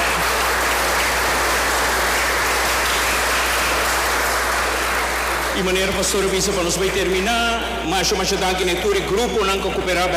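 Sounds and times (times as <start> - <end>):
audience applause: 0.0 - 7.1
speech: 5.6 - 10.1.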